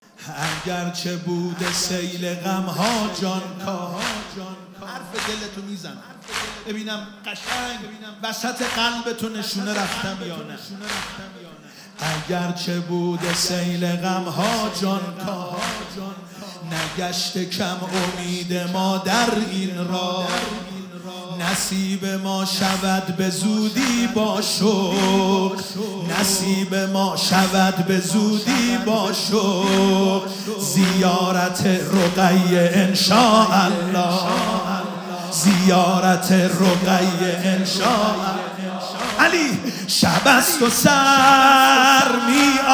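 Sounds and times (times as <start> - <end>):
devotional singing: 0.0 - 42.7.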